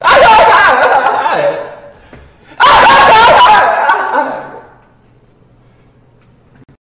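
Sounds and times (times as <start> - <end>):
laughing: 0.0 - 4.8.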